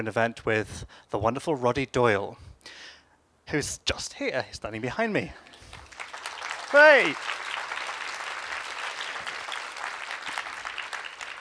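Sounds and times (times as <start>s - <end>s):
speech: 0.0s - 2.9s, 3.5s - 5.6s, 6.7s - 7.4s
audience applause welcoming author Roddy Doyle at the Edinburgh International Book Festival: 5.5s - 11.3s.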